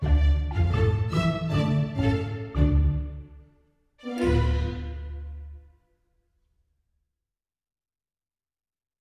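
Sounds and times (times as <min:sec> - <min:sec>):
waltz music: 0:00.0 - 0:05.8.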